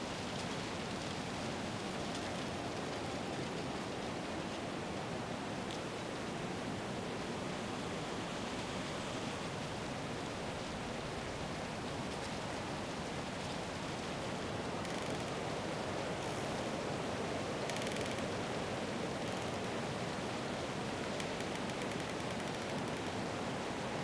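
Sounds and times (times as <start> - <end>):
moderate winter forest wind in North Laurentian Woods in Canada: 0.0 - 24.0
tree bark creaking in winter forest wind: 14.8 - 16.7, 17.6 - 18.6, 19.2 - 19.8, 20.9 - 23.3.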